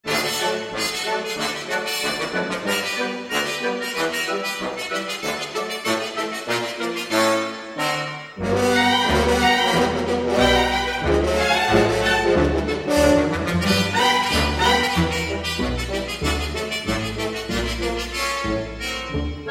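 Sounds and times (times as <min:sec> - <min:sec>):
fugue: 0:00.1 - 0:19.4.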